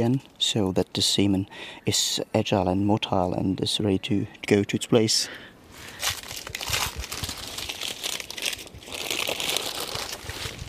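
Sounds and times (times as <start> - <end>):
speech: 0.0 - 6.2
sterile instrument plastic packaging being torn open, crinkling: 5.8 - 10.6.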